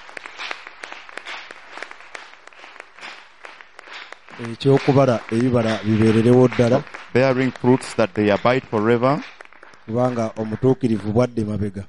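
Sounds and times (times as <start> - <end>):
audience clapping: 0.0 - 11.6
speech: 4.4 - 9.3, 9.9 - 11.8.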